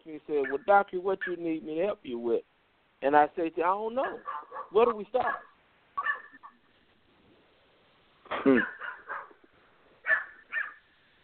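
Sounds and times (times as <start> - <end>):
speech: 0.1 - 5.5, 8.3 - 8.8
dog barking: 0.4 - 1.4, 4.0 - 6.6, 8.5 - 9.4, 10.0 - 10.8.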